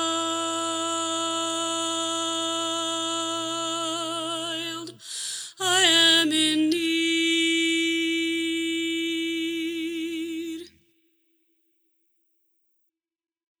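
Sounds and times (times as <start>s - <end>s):
soprano choir part: 0.0s - 10.7s.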